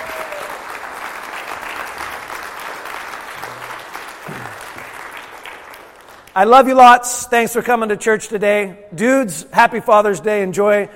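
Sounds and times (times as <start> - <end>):
audience applauding: 0.0 - 6.4
speech: 6.4 - 10.9.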